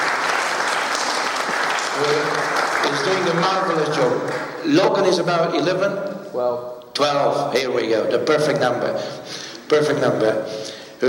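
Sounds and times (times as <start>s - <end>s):
audience clapping for a young sound engineer: 0.0s - 4.9s
speech: 2.9s - 11.0s.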